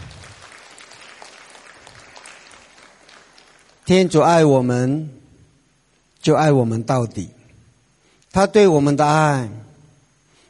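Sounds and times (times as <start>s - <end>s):
audience applause: 0.0s - 3.9s
speech: 3.9s - 5.2s, 6.2s - 7.4s, 8.4s - 9.7s.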